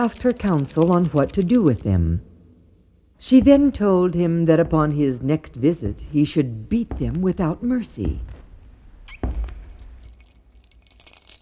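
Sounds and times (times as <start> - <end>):
speech: 0.0 - 2.3, 3.2 - 8.3
key turning in a door lock: 9.1 - 11.4.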